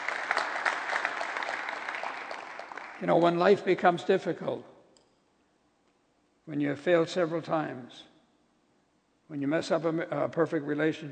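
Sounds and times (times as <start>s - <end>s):
audience applause during a church sermon: 0.0s - 3.1s
speech: 3.0s - 4.7s, 6.5s - 8.1s, 9.3s - 11.0s.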